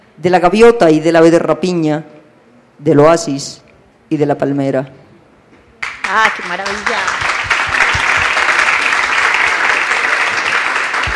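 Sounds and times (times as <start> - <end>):
speech: 0.2 - 2.2, 2.8 - 5.0, 6.1 - 6.9
audience applause: 5.8 - 11.1.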